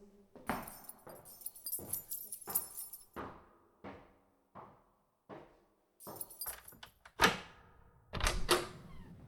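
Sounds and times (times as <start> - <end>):
bunch of keys jangling: 0.5 - 3.2, 6.0 - 7.0
latch and door clunks: 8.2 - 9.1.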